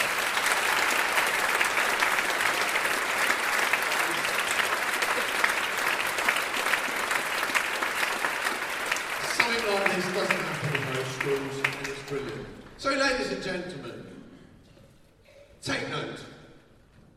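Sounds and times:
audience applause: 0:00.0 - 0:12.7
speech: 0:12.9 - 0:13.8.

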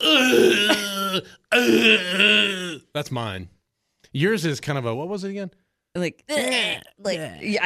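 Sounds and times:
person imitating a winded grunt: 0:00.0 - 0:02.8
speech: 0:00.2 - 0:07.6.

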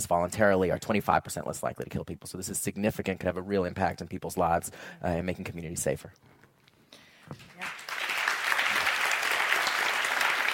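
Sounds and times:
speech: 0:00.0 - 0:06.4
audience applause: 0:07.5 - 0:10.5.

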